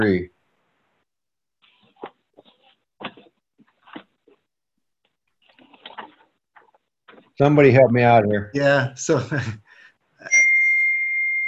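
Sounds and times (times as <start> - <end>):
speech: 0.0 - 0.3, 7.4 - 9.6
bell ringing: 10.3 - 11.4.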